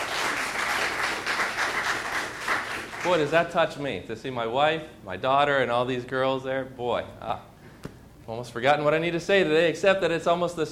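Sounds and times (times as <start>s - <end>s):
audience applause: 0.0s - 3.2s
speech: 3.0s - 7.5s, 8.3s - 10.7s.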